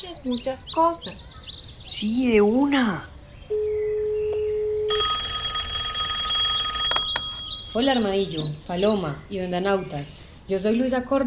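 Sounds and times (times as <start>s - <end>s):
speech: 0.0s - 3.7s, 7.7s - 11.2s
low dial tone: 3.5s - 7.5s
telephone ringing: 3.5s - 8.4s.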